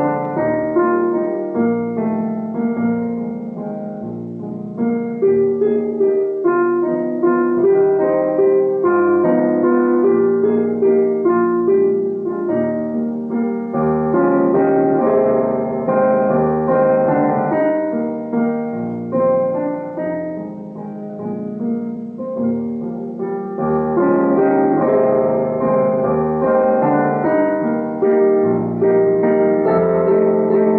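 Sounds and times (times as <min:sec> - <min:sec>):
background piano: 0:00.0 - 0:30.7.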